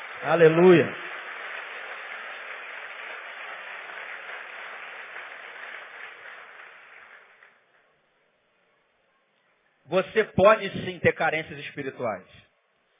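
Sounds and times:
audience applauding: 0:00.0 - 0:07.9
speech: 0:00.2 - 0:01.0, 0:09.9 - 0:12.4.

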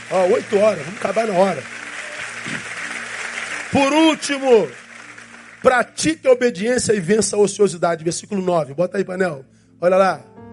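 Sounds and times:
audience applauding: 0:00.0 - 0:06.4
speech: 0:00.1 - 0:01.8, 0:02.4 - 0:02.8, 0:03.7 - 0:04.8, 0:05.6 - 0:10.4.

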